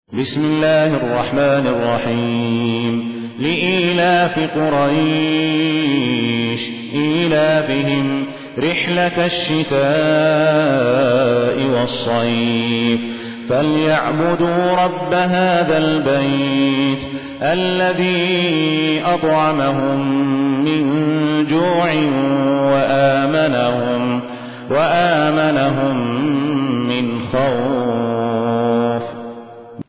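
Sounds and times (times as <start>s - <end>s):
Quran recitation: 0.1s - 29.8s.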